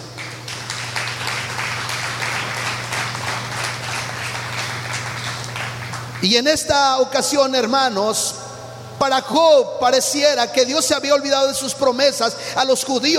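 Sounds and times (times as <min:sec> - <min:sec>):
audience applauding in a large room: 0:00.0 - 0:06.3
low electrical hum: 0:00.0 - 0:13.1
speech: 0:06.2 - 0:08.4, 0:09.0 - 0:13.1.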